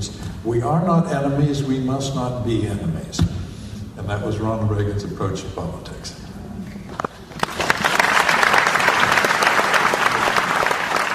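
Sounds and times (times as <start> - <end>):
speech: 0.4 - 3.4, 4.0 - 6.2
audience applauding a response from George Will: 7.3 - 11.1.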